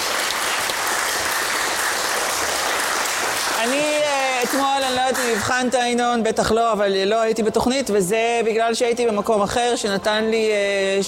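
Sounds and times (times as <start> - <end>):
stormy audience applause: 0.0 - 5.8
speech: 4.5 - 11.0.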